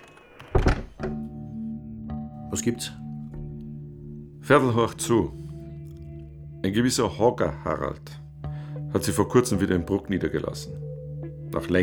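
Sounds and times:
door pushed shut with heavy thump: 0.4s - 1.3s
speech: 2.5s - 3.0s, 4.5s - 5.4s, 6.6s - 8.2s, 8.9s - 10.8s, 11.5s - 11.8s.

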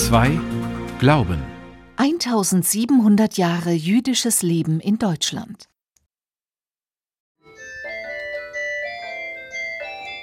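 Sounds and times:
speech: 0.0s - 5.7s
office telephone ringing with a melodic electronic tune: 7.4s - 10.2s.

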